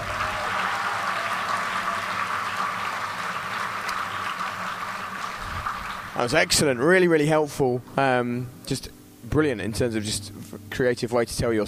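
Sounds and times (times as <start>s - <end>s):
audience round of applause: 0.0s - 7.0s
speech: 6.2s - 11.6s.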